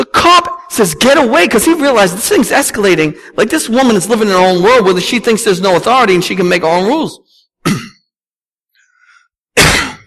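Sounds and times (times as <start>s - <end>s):
speech: 0.4s - 7.9s
person coughing: 7.6s - 8.1s, 9.6s - 10.0s.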